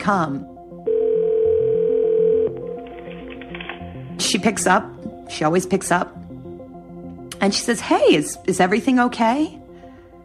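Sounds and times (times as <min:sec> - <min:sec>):
speech: 0:00.0 - 0:00.6, 0:04.2 - 0:06.2, 0:07.4 - 0:09.6
telephone tone: 0:00.9 - 0:02.8.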